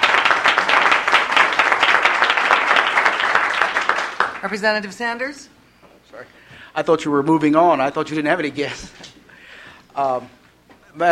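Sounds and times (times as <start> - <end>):
applause in a legislative chamber: 0.0 - 4.7
speech: 4.4 - 9.1, 10.0 - 11.1.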